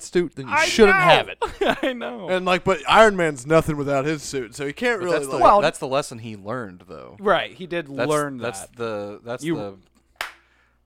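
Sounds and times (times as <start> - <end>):
speech: 0.1 - 9.9
hands clapping: 10.2 - 10.5.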